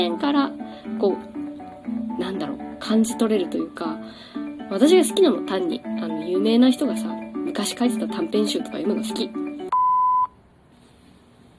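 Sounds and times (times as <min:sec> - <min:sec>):
speech: 0:00.0 - 0:09.4
loud electronic announcement chime beep: 0:09.7 - 0:10.3.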